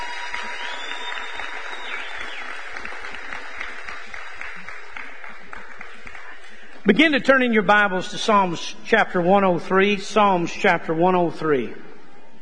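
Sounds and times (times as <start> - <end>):
audience applause: 0.0 - 6.8
speech: 6.8 - 11.9.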